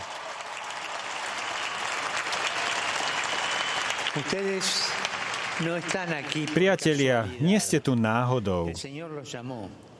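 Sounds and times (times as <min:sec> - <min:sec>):
loud applause from a large crowd: 0:00.0 - 0:07.1
speech: 0:04.2 - 0:05.0, 0:05.6 - 0:09.9.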